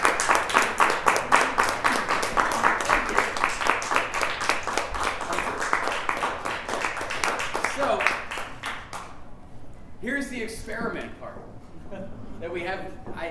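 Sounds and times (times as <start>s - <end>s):
audience applause: 0.0s - 9.1s
speech: 11.4s - 13.2s.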